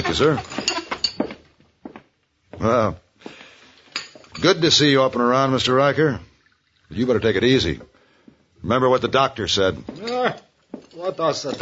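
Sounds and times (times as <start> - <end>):
speech: 0.0 - 0.8, 2.6 - 3.4, 4.4 - 6.3, 6.9 - 7.9, 8.6 - 11.6
china cup clinking: 0.0 - 1.5, 3.8 - 4.9, 9.9 - 11.6
coffee poured into a china cup: 5.4 - 7.9.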